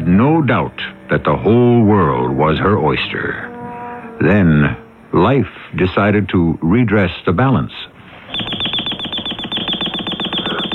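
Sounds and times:
speech: 0:00.1 - 0:03.5, 0:04.2 - 0:08.4
alarm clock beeping: 0:08.3 - 0:10.7.

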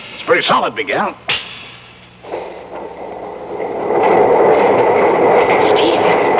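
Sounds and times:
speech: 0:00.3 - 0:01.3
heavy mechanical doors opening: 0:02.2 - 0:06.3.

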